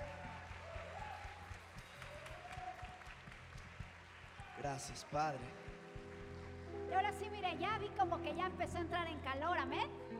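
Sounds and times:
audience applause: 0.0s - 7.0s
speech: 4.6s - 5.7s, 6.9s - 10.1s.

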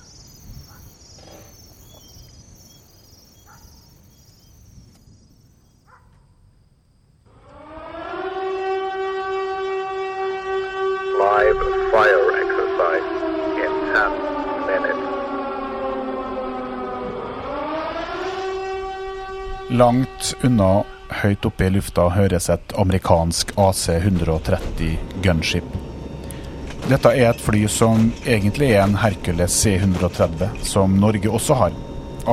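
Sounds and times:
alarm siren at night: 0.0s - 5.8s, 7.1s - 32.3s
speech: 19.8s - 25.8s, 26.9s - 32.3s.

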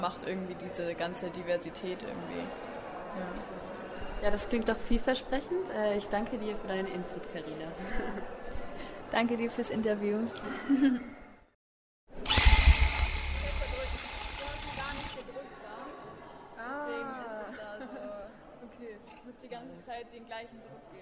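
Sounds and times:
speech: 0.0s - 8.4s, 9.1s - 11.2s
laughter: 10.4s - 11.2s
rug-tufting motorized whirring buzz: 12.2s - 15.2s.

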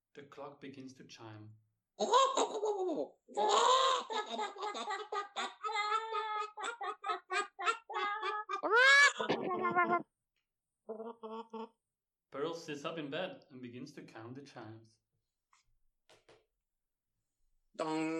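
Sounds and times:
speech: 0.2s - 6.1s, 9.2s - 10.1s, 10.9s - 15.0s, 17.8s - 18.1s
startled chickens squawking and cackling: 6.4s - 10.0s.

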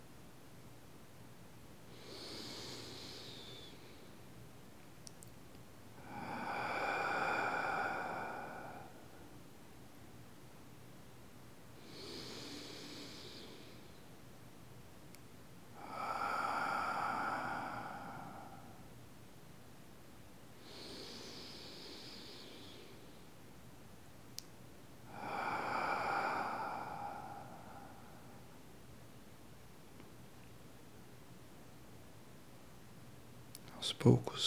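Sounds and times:
deep slow breathing in through the nose and out through the mouth: 1.9s - 4.2s, 6.0s - 9.4s, 11.8s - 14.1s, 15.8s - 19.0s, 20.6s - 23.4s, 25.1s - 28.6s
speech: 33.9s - 34.4s.

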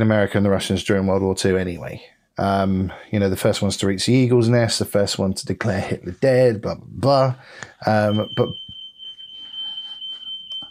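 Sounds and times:
speech: 0.0s - 8.6s
smoke alarm beeping in the house: 7.9s - 10.7s.

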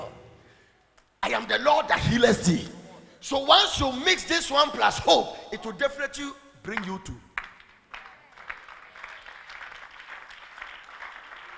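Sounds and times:
speech: 1.3s - 7.2s
audience applause: 7.4s - 11.5s.

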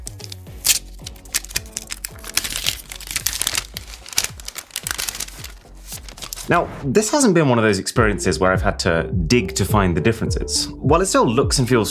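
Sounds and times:
protective plastic film peeled off a new OnePlus foldable phone's packaging: 0.0s - 6.5s
speech: 6.5s - 11.8s.

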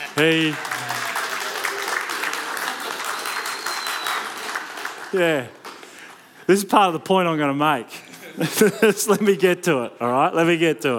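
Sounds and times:
crowd applause: 0.0s - 6.0s
speech: 0.2s - 0.9s, 5.1s - 5.6s, 6.5s - 10.9s
laughter: 8.0s - 9.4s.

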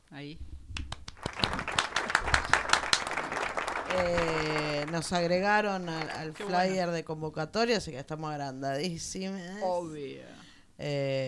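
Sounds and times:
speech: 0.1s - 0.6s, 3.9s - 11.2s
applause: 0.8s - 6.7s.

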